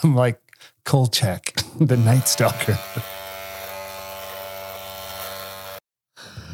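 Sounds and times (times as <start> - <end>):
speech: 0.0 - 3.1
electric razor shaving whiskers: 1.9 - 5.8.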